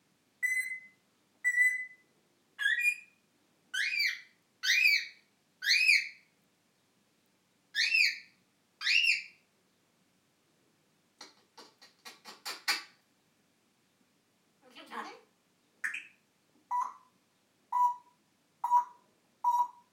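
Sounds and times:
African grey parrot imitating birds: 2.6 - 3.1, 3.8 - 6.2, 7.8 - 9.3, 11.2 - 13.0, 15.8 - 19.9.

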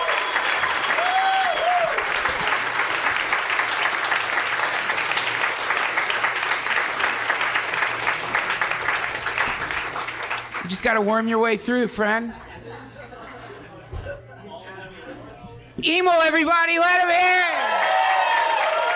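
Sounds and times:
audience applause: 0.0 - 11.1, 17.4 - 18.9
speech: 10.8 - 13.0, 15.8 - 17.6
laughter: 12.3 - 15.4.

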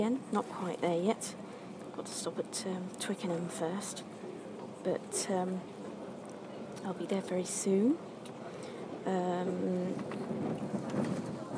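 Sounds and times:
speech: 0.0 - 4.2, 4.8 - 5.7, 6.8 - 8.1, 9.0 - 11.2
train running: 8.8 - 11.5.

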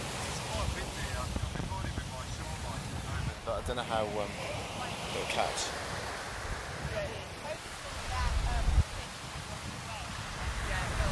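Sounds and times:
gusty wind buffeting the microphone: 0.0 - 11.0
sea waves washing: 0.0 - 11.0
speech: 3.5 - 4.6, 5.2 - 5.8.

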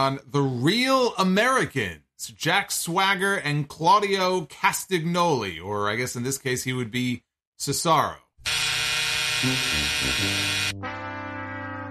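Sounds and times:
speech: 0.0 - 8.6, 9.4 - 11.0
loud harsh electronic buzzer blaring: 8.4 - 11.0.

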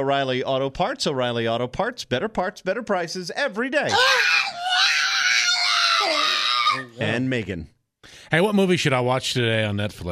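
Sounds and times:
speech: 0.0 - 4.8, 6.0 - 10.1
pug dog screaming: 3.9 - 7.0.

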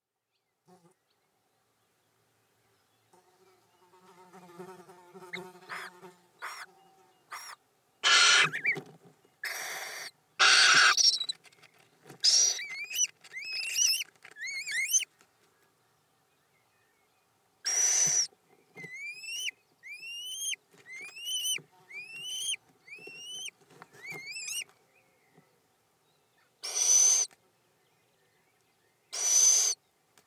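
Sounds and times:
little owl feeding visit calls: 5.7 - 6.7, 7.3 - 8.8, 9.4 - 11.4, 12.2 - 15.1, 17.6 - 24.7, 26.6 - 27.4, 29.1 - 29.8.

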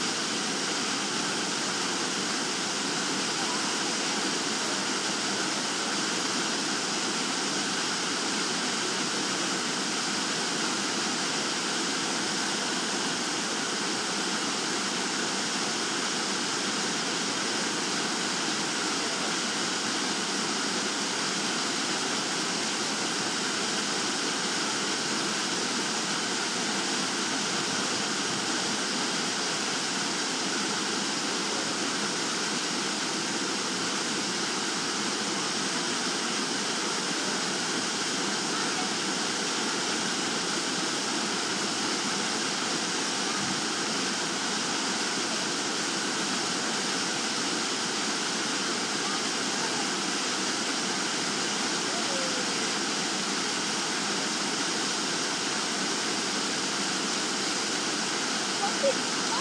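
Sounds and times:
waterfall: 0.0 - 59.4.

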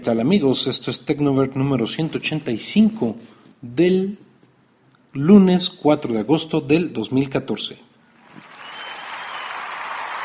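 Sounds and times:
speech: 0.0 - 4.3, 5.2 - 7.9
applause in place of a show's opening theme: 8.2 - 10.2.

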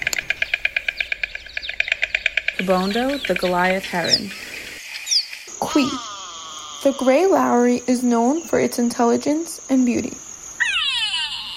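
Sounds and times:
pied crow calling: 0.0 - 7.3, 10.6 - 11.5
speech: 2.6 - 4.4, 5.7 - 6.1, 6.8 - 10.2.

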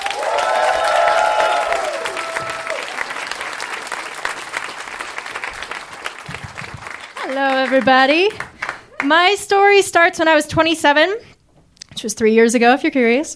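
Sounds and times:
audience clapping at a live storytelling show: 0.0 - 9.4
speech: 7.6 - 8.4, 9.0 - 11.3, 12.0 - 13.3.

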